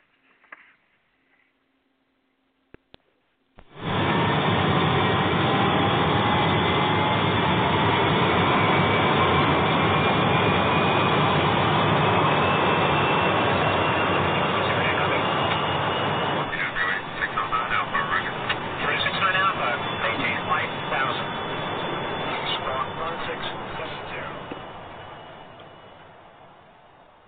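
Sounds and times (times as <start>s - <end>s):
Eastern 370 jet airliner engine roar rolling for takeoff on runway 9 left: 3.7s - 27.0s.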